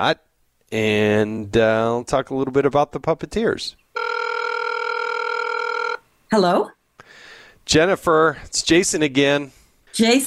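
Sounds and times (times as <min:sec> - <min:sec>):
speech: 0:00.0 - 0:03.8, 0:06.3 - 0:06.8, 0:07.7 - 0:10.2
electronic telephone tone while dialling a caller: 0:04.0 - 0:06.0.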